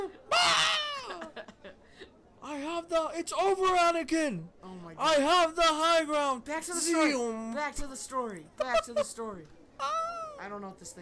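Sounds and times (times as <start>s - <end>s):
laughter: 0.0s - 2.2s
human voice imitating a narwhal scream: 0.3s - 1.2s
speech: 2.9s - 10.9s.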